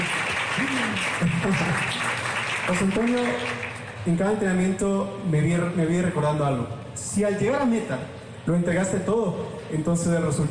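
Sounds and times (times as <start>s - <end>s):
audience clapping for an athlete's coach: 0.0s - 4.0s
speech: 0.6s - 10.4s.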